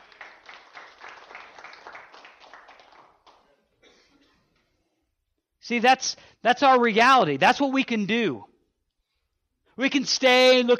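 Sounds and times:
audience round of applause: 0.0 - 3.5
speech: 5.7 - 8.5, 9.8 - 10.7.

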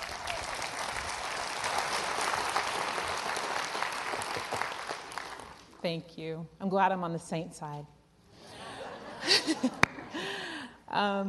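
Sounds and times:
audience applause welcoming a speaker at a morning gathering: 0.0 - 5.7
speech: 5.8 - 8.0, 9.5 - 10.3, 10.9 - 11.2
laughter: 8.4 - 10.2.

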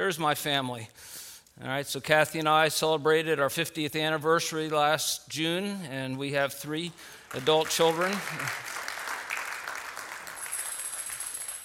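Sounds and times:
speech: 0.0 - 8.7
audience applause: 7.2 - 11.6.

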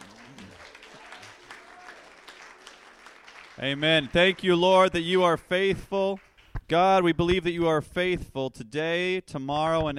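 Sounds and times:
audience clapping hands: 0.0 - 6.8
speech: 3.6 - 9.9.

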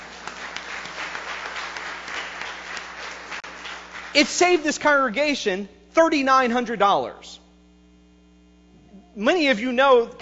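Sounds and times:
audience applause: 0.0 - 4.6
speech: 4.2 - 7.4, 9.2 - 10.2.

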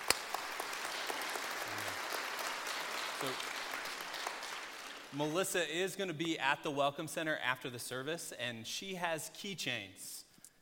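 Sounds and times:
audience applause: 0.0 - 5.3
speech: 3.2 - 3.5, 5.1 - 10.2.

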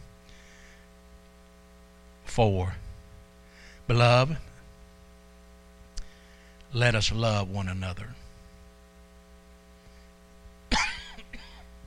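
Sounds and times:
speech: 2.4 - 2.8, 3.9 - 4.5, 6.7 - 8.2
preacher coughing while choked up during a sermon: 10.7 - 11.7.

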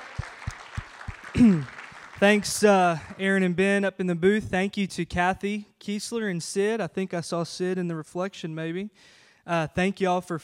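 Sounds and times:
group clapping: 0.0 - 3.4
speech: 1.4 - 10.4.

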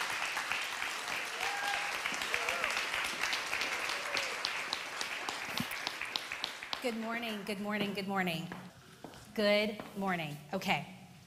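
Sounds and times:
audience applause welcoming a speaker: 0.0 - 6.8
speech: 6.8 - 8.7, 9.4 - 11.0.

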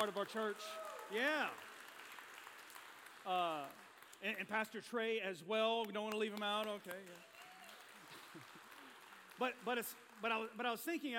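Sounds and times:
speech: 0.0 - 1.7, 3.2 - 7.3, 8.4 - 8.6, 9.4 - 11.1
audience clapping: 0.0 - 11.1.

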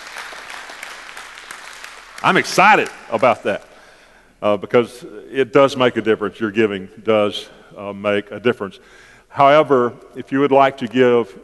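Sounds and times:
audience praise clap: 0.0 - 3.8
speech: 2.2 - 3.7, 4.4 - 11.4.

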